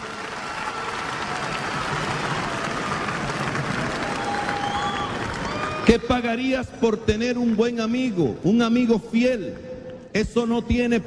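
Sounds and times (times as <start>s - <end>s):
audience applause: 0.0s - 6.4s
speech: 5.8s - 11.0s.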